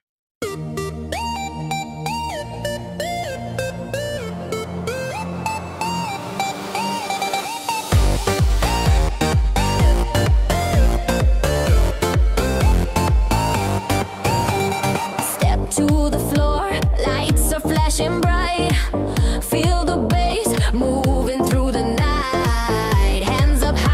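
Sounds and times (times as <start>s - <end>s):
techno remix music: 0.4s - 23.9s.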